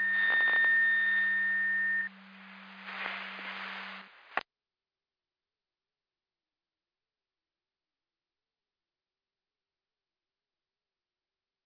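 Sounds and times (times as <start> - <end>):
siren: 0.0 - 3.6.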